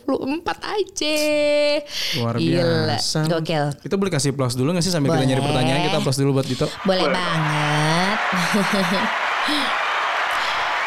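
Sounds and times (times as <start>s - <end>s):
speech: 0.1s - 9.8s
laughter: 5.1s - 10.8s
clapping hands: 7.3s - 10.8s.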